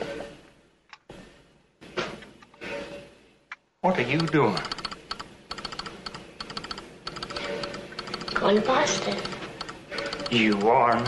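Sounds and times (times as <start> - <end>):
speech: 3.8 - 4.8, 8.5 - 9.4, 10.3 - 11.0
rapid bright clicking taps like Morse code: 4.2 - 11.0.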